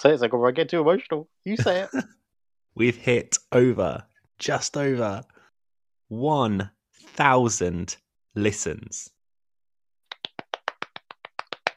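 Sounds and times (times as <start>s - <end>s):
speech: 0.0s - 2.2s, 2.8s - 5.4s, 6.1s - 9.1s
one person clapping hands: 10.1s - 11.7s.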